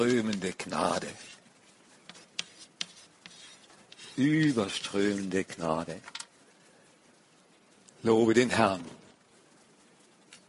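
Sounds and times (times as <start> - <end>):
speech: 0.0 - 1.4, 4.2 - 6.2, 8.0 - 9.0
scratching of something being written down: 0.8 - 5.2.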